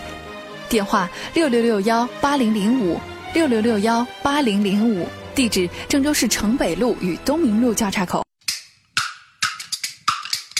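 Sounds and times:
speech: 0.7s - 8.2s
bamboo clapper boards being struck: 8.4s - 10.5s.

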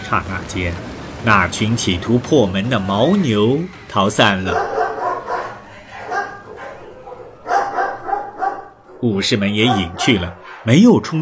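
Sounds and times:
speech: 0.1s - 4.8s, 9.0s - 11.2s
dog barking: 4.5s - 10.8s.

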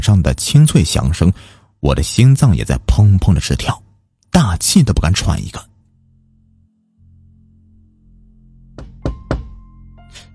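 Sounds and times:
speech: 0.0s - 3.8s, 4.4s - 5.7s
knocking on a door: 8.7s - 9.7s.

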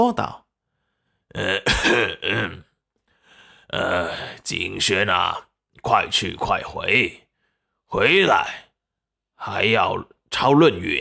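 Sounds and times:
speech: 0.0s - 0.4s, 1.3s - 2.7s, 3.7s - 7.2s, 7.9s - 8.6s, 9.4s - 10.9s
person coughing: 1.4s - 2.7s.

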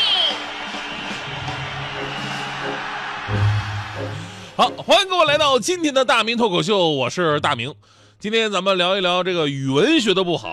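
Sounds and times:
applause: 0.0s - 3.9s
cheering: 0.0s - 5.1s
speech: 4.6s - 10.5s.

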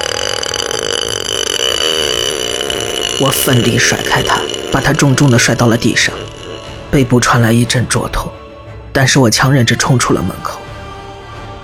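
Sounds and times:
creepy burping sound effect: 0.0s - 8.1s
speech: 3.2s - 6.3s, 6.9s - 8.3s, 9.0s - 10.6s.

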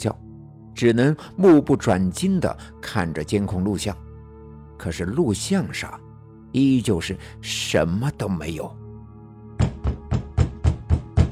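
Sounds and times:
speech: 0.0s - 0.2s, 0.8s - 4.0s, 4.8s - 8.8s
knocking on a door: 9.6s - 11.3s.

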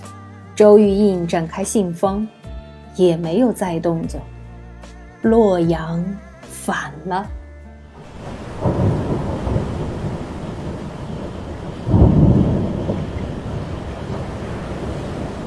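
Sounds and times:
speech: 0.6s - 2.4s, 3.0s - 4.4s, 5.2s - 7.4s
rumbling thunder: 8.0s - 15.4s.

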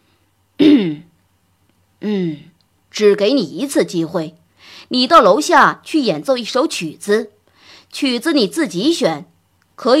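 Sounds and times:
throat clearing: 0.6s - 1.1s
speech: 2.0s - 9.9s.

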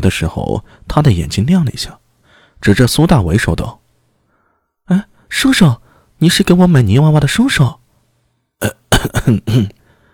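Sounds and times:
speech: 0.0s - 2.0s, 2.6s - 3.8s, 4.9s - 7.8s, 8.6s - 9.8s
man coughing: 8.6s - 9.8s.

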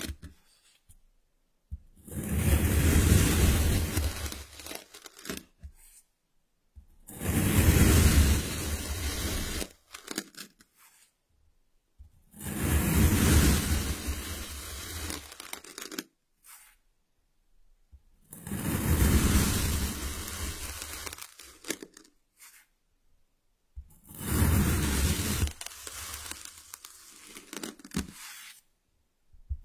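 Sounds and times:
kinetic sand rustling: 2.2s - 4.7s, 7.1s - 9.7s, 12.4s - 15.8s, 18.5s - 21.8s, 24.1s - 28.6s.

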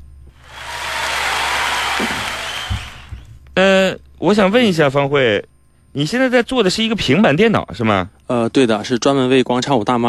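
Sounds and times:
audience applause: 0.4s - 3.3s
speech: 4.2s - 10.0s.

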